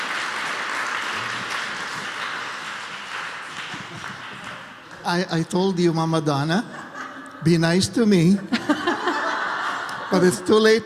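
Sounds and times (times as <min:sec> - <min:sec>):
audience applause: 0:00.0 - 0:05.0
laughter: 0:03.6 - 0:04.7, 0:06.3 - 0:10.8
speech: 0:05.0 - 0:06.8, 0:07.4 - 0:08.8, 0:10.1 - 0:10.8.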